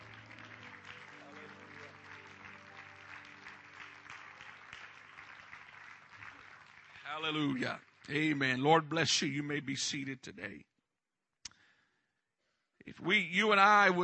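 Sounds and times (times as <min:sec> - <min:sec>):
audience clapping: 0:00.0 - 0:09.4
speech: 0:07.1 - 0:10.7, 0:12.9 - 0:14.0.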